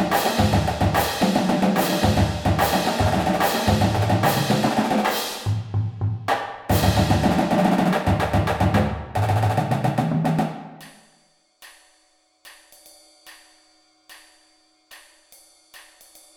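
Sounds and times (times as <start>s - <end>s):
full drumline playing: 0.0s - 5.6s, 6.7s - 10.6s.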